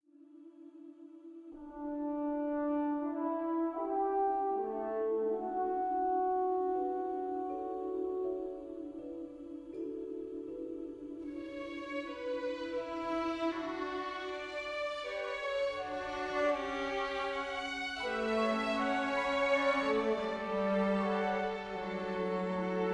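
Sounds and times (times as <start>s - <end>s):
world music: 2.3s - 22.9s.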